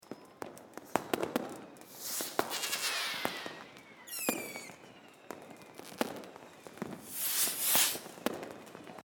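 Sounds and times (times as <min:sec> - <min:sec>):
New Year's Eve ambience: 0:00.8 - 0:08.5.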